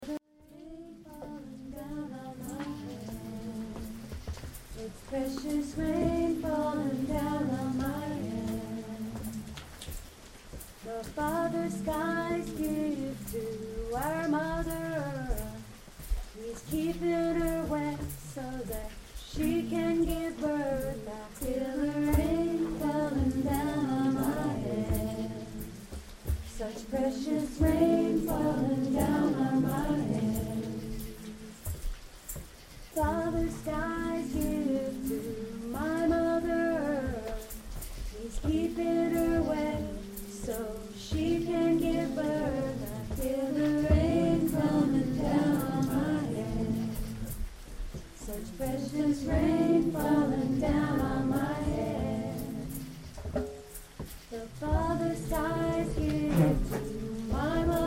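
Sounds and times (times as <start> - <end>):
rain falling: 0.0 - 57.8.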